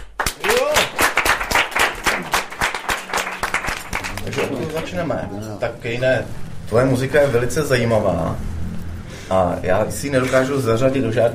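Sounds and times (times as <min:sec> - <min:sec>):
small audience applause welcoming musicians: 0:00.0 - 0:05.2
whoops and cheers: 0:00.3 - 0:01.0
speech: 0:04.8 - 0:08.5, 0:09.3 - 0:11.3.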